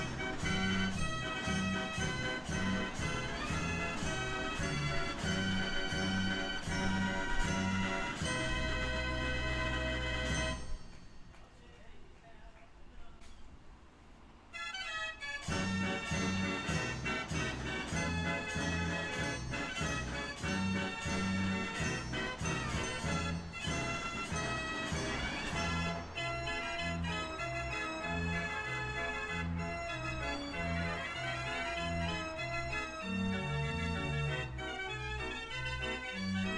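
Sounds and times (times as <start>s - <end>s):
street organ: 0.0s - 11.4s, 14.6s - 36.5s.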